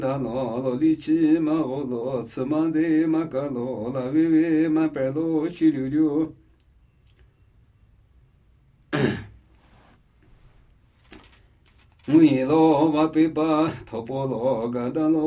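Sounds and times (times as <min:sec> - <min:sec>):
Namuyi Tibetan ritual chanting: 0:00.0 - 0:06.4, 0:12.1 - 0:15.2.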